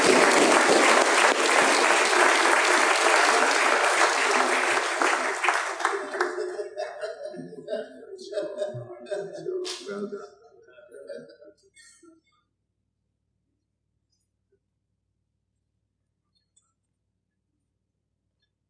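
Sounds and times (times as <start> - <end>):
crowd applause: 0.0 - 7.2
voices and light laughter: 5.2 - 12.2.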